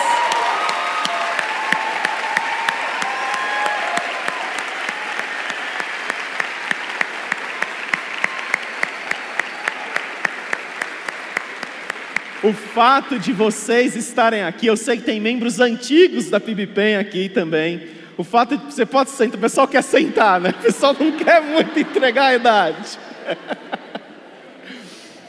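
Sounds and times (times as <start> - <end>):
audience applause: 0.0 - 13.4, 20.1 - 25.0
speech: 12.5 - 23.7
laughter: 19.8 - 25.2.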